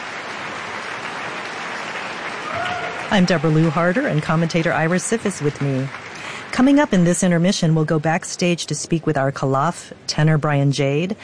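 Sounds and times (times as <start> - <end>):
opera audience applause: 0.0 - 7.2
speech: 2.5 - 11.2.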